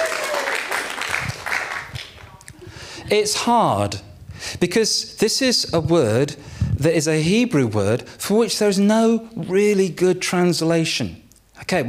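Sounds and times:
audience applause: 0.0s - 2.4s
speech: 3.1s - 11.8s.

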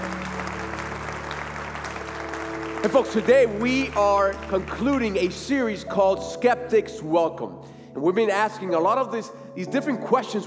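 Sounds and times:
church congregation applauding to welcome first-time guests: 0.0s - 6.0s
speech: 2.8s - 10.4s.

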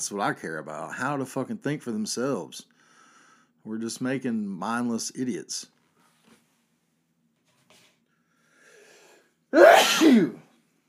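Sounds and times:
speech: 0.0s - 2.7s, 3.6s - 5.8s, 9.5s - 10.4s
person sneezing: 9.6s - 10.5s.

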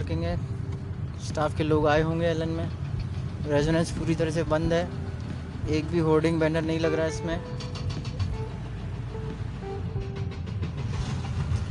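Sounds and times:
speech: 0.1s - 0.6s, 1.2s - 2.8s, 3.4s - 5.0s, 5.6s - 7.7s
knocking from flyover construction work on Jhalawar Road: 1.8s - 11.6s.

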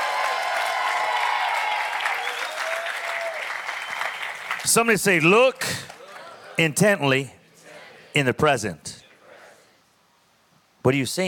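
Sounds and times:
faint shout or cheer: 0.0s - 3.7s
audience praise clapping: 0.0s - 6.6s
speech: 4.6s - 5.9s, 6.6s - 7.4s, 8.2s - 8.9s, 10.8s - 11.2s.

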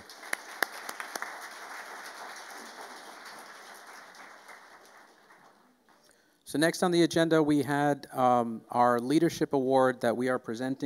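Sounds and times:
audience applause: 0.0s - 5.8s
speech: 6.5s - 10.8s.

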